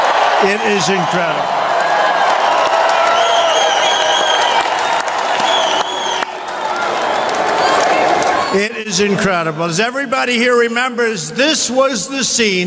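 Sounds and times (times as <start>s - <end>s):
large rally crowd cheering: 0.0s - 9.5s
speech: 0.4s - 1.6s, 8.5s - 12.6s.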